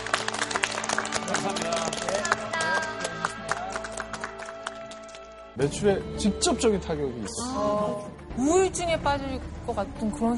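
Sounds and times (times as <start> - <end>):
studio audience applause: 0.0 - 5.5
speech: 5.6 - 10.3.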